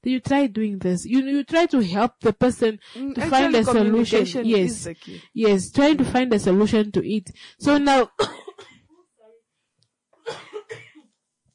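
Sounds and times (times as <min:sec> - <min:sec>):
speech: 0:00.0 - 0:08.4
person giving harsh dry coughs: 0:08.2 - 0:08.9, 0:10.3 - 0:11.1.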